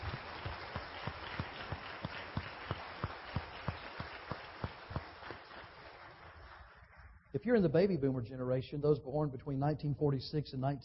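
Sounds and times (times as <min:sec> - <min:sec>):
audience applause: 0:00.0 - 0:07.0
speech: 0:07.4 - 0:10.8.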